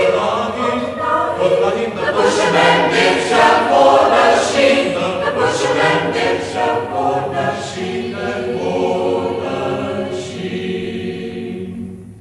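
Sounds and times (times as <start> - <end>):
chamber choir singing in Schäßburg local dialect: 0.0 - 12.1.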